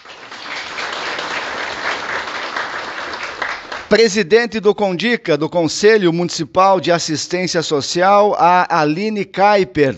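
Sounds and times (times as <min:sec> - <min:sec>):
audience applause: 0:00.0 - 0:04.0
speech: 0:03.9 - 0:09.9.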